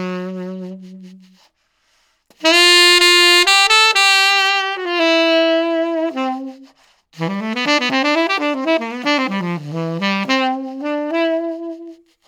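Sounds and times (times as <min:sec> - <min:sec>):
tenor saxophone: 0:00.0 - 0:01.6, 0:02.3 - 0:12.2.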